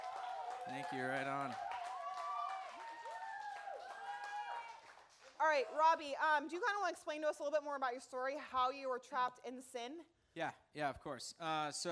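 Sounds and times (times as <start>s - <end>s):
crowd whooping and cheering: 0.0s - 5.0s
audience applause: 0.0s - 5.6s
speech: 0.7s - 1.8s, 5.4s - 11.9s.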